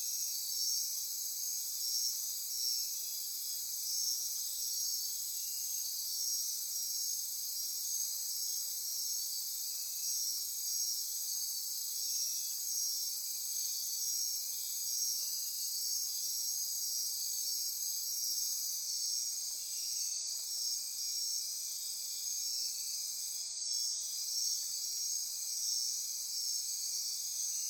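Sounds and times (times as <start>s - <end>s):
insect chorus trilling: 0.0s - 27.6s.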